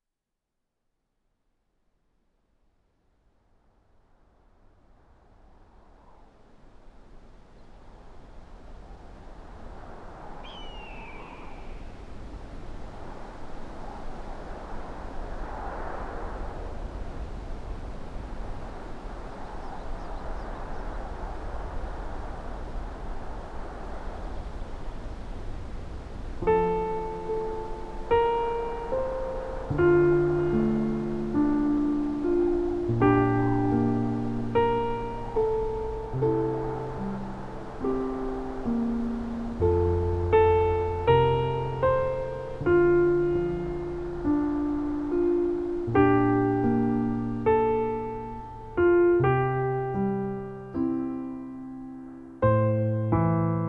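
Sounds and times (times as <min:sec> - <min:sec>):
piano piece: 0:26.4 - 0:53.6.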